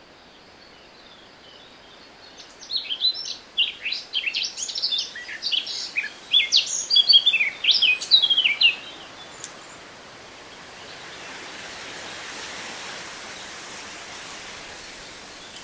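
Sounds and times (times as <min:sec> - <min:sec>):
Eurasian blackcap Sylvia atricapilla song: 0:02.4 - 0:09.8.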